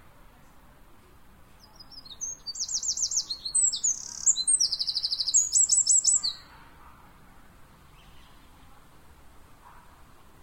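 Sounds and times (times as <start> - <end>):
background hiss: 0.0 - 10.4
Eurasian wren trilling calls: 1.6 - 6.5.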